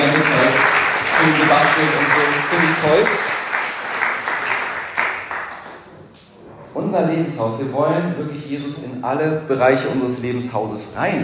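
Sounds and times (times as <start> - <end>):
audience applause: 0.0 - 5.9
speech: 1.2 - 3.4, 6.9 - 11.2.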